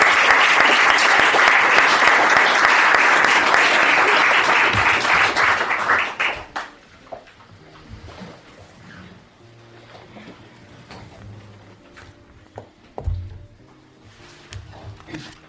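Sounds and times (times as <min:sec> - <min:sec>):
applause: 0:00.0 - 0:06.8.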